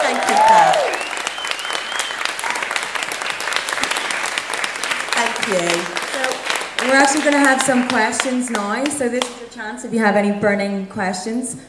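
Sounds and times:
audience applause: 0.0 - 9.0
speech: 7.0 - 11.6.

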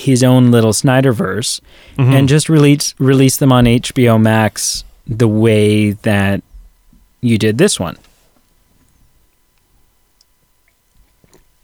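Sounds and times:
speech: 0.0 - 6.5, 7.2 - 8.1
person sipping water: 10.2 - 11.6.

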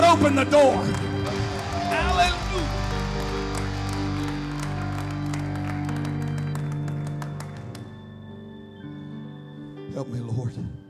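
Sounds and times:
speech: 0.2 - 1.1, 10.0 - 10.8
audience clapping hands in praise: 0.3 - 8.1.

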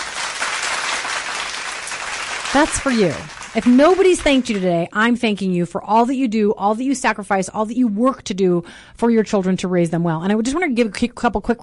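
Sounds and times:
applause sound effect: 0.0 - 4.8
speech: 2.5 - 11.6.

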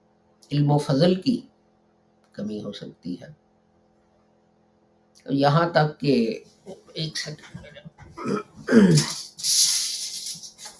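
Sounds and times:
speech: 0.5 - 1.5, 2.4 - 3.4, 5.2 - 9.8
man coughing during a Quran commentary lecture: 7.5 - 9.4.

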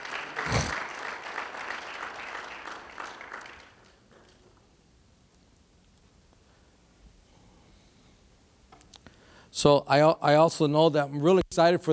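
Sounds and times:
audience clapping: 0.0 - 4.4
speech: 9.6 - 11.9.

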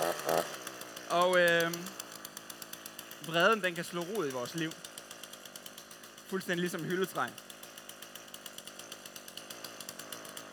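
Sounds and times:
chainsaw starting on stage: 0.0 - 10.5
speech: 1.2 - 1.9, 3.3 - 4.9, 6.3 - 7.4.

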